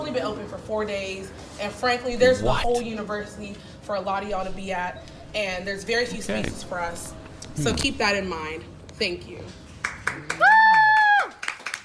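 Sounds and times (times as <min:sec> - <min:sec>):
speech: 0:00.1 - 0:10.5
scattered claps: 0:09.8 - 0:11.8
loud high-pitched whoop: 0:10.4 - 0:11.4.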